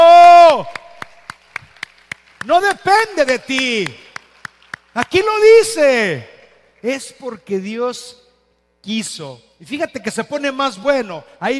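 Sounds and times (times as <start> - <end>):
audience clapping in unison: 0.6 - 5.3
speech: 2.5 - 4.0, 5.0 - 8.2, 8.8 - 11.5.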